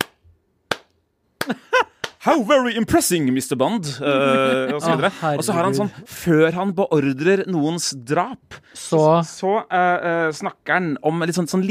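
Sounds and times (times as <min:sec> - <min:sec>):
slow hand clapping: 0:00.0 - 0:02.2
laughter: 0:01.4 - 0:02.0, 0:03.9 - 0:06.5
speech: 0:01.5 - 0:11.6.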